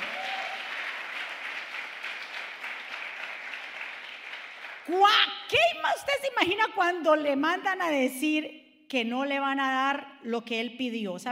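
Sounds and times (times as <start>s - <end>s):
audience applauding loudly: 0.0s - 5.0s
speech: 4.9s - 11.3s.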